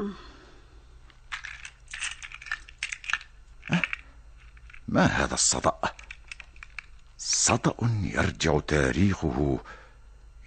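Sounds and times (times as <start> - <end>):
speech: 0.0 - 0.3, 4.9 - 6.0, 7.5 - 9.8
metal basement keys jingling as taken from a key cabinet: 1.3 - 4.9, 5.8 - 7.1.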